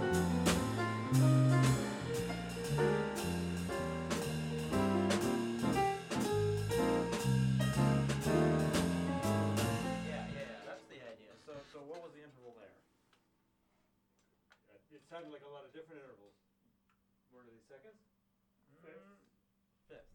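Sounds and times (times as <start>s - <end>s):
mellow jazz: 0.0s - 10.7s.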